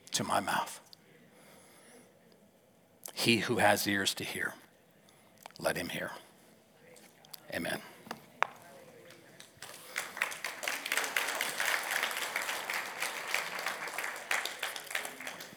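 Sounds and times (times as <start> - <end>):
speech: 0.2 - 0.8, 3.2 - 4.6, 5.6 - 6.2, 7.5 - 7.9
audience clapping: 8.4 - 15.5.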